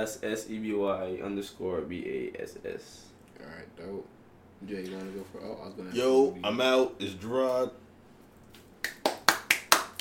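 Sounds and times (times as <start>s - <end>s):
speech: 0.0s - 7.8s
quick even hand claps: 8.6s - 9.9s.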